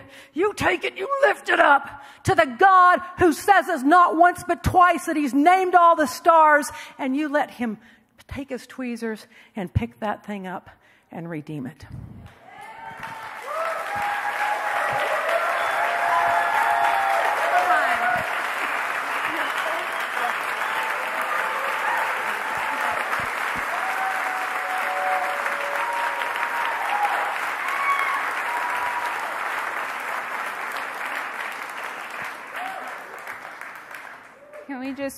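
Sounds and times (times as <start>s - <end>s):
speech: 0.1s - 12.4s
audience clapping: 12.3s - 35.1s.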